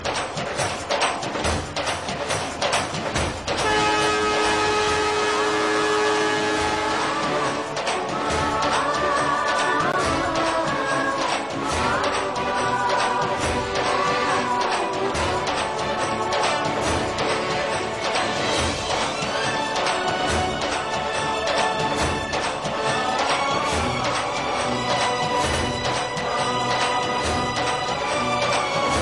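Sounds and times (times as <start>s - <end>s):
instrumental music: 0.0s - 29.0s.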